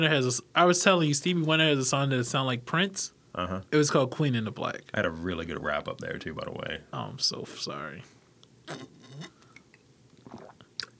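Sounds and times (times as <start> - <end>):
speech: 0.0 - 9.3
slurping sips of a drink: 8.7 - 10.9.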